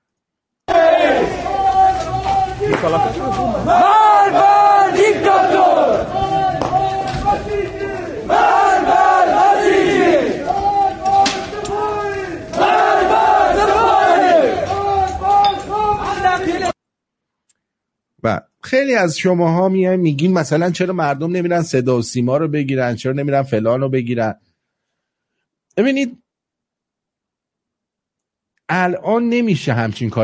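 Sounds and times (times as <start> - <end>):
crowd of protesters chanting: 0.7 - 16.7
speech: 2.8 - 4.5, 18.2 - 24.5, 25.8 - 26.2, 28.7 - 30.2.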